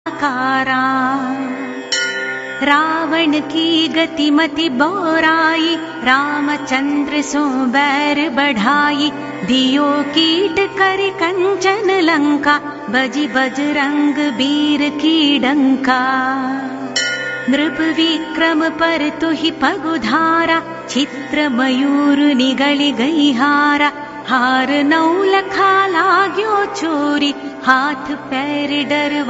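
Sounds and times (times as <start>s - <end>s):
devotional chanting: 0.1s - 29.2s.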